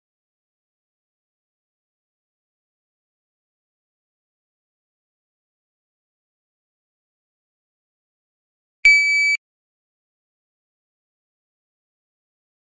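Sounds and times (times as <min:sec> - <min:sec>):
dry fire beep: 0:08.9 - 0:09.4.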